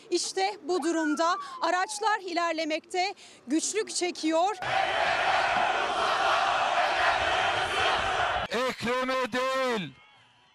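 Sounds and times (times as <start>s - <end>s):
speech: 0.1s - 6.1s, 8.5s - 10.0s
crowd chanting and cheering at airport welcome gathering: 4.6s - 8.5s.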